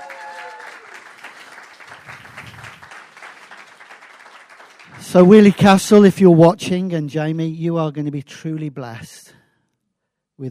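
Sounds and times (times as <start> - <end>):
church audience round of applause: 0.0 - 5.6
speech: 5.0 - 9.4.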